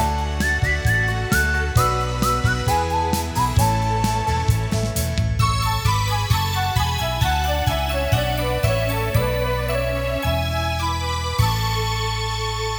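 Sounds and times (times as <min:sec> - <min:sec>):
person whistling a tune: 0:00.0 - 0:12.6.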